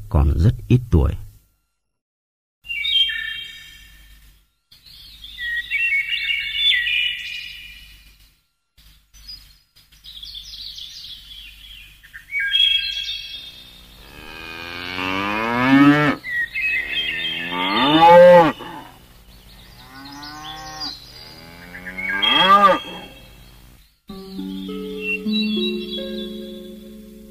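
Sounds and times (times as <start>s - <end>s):
speech: 0.1s - 1.2s
small birds chirping: 2.6s - 27.2s
cattle mooing in the distance: 13.6s - 19.0s, 19.7s - 23.4s.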